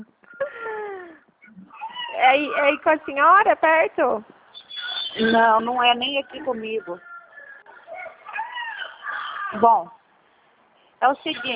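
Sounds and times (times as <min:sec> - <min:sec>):
speech: 0:02.3 - 0:04.3, 0:05.2 - 0:07.1, 0:09.5 - 0:10.0, 0:11.0 - 0:11.5
rooster crowing: 0:05.8 - 0:09.6.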